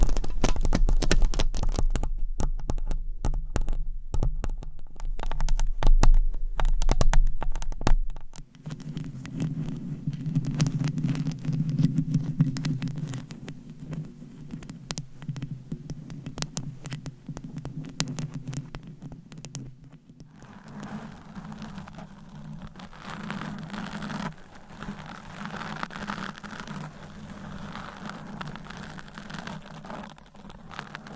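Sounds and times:
mic scratching: 0.0s - 31.1s.

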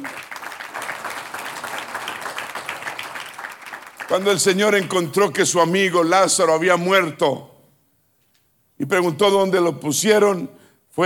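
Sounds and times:
audience applause: 0.0s - 5.0s
speech: 4.1s - 7.5s, 8.8s - 11.0s.

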